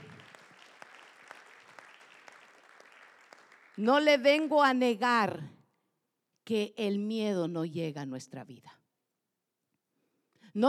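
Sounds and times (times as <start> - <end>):
clapping: 0.0 - 3.8
speech: 3.8 - 5.6, 6.5 - 8.8.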